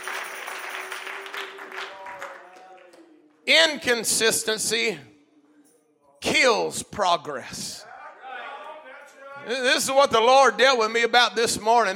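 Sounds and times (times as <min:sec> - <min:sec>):
audience clapping hands: 0:00.0 - 0:03.3
speech: 0:03.5 - 0:05.1, 0:06.5 - 0:07.8, 0:09.5 - 0:11.9.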